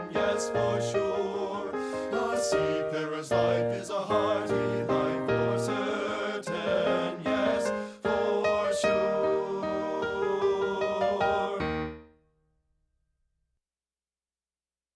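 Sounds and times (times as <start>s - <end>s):
men singing bass part of a sea song: 0.0s - 11.6s.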